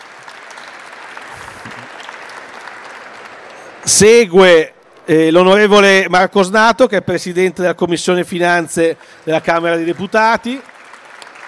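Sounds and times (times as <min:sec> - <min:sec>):
audience applause: 0:00.0 - 0:05.1, 0:08.3 - 0:11.4
speech: 0:03.8 - 0:10.7.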